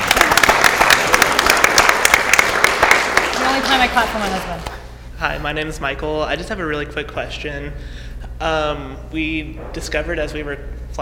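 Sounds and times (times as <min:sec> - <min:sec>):
audience clapping: 0:00.0 - 0:04.8
speech: 0:03.8 - 0:11.0.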